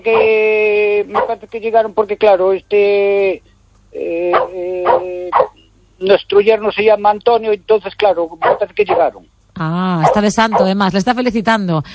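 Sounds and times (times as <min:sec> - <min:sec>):
speech: 0:00.0 - 0:11.9
dog barking and whining: 0:01.1 - 0:01.4, 0:04.3 - 0:05.6, 0:08.4 - 0:09.2, 0:10.0 - 0:10.8.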